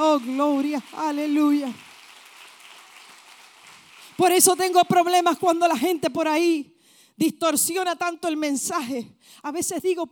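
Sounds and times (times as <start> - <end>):
speech: 0.0 - 1.9, 4.2 - 10.1
audience applause: 0.0 - 4.2.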